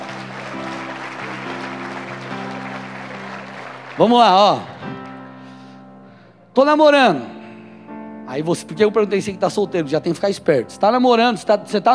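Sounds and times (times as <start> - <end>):
crowd applauding: 0.0 - 5.8
low musical tones: 0.0 - 11.9
speech: 4.0 - 5.0, 6.6 - 7.4, 8.3 - 11.9.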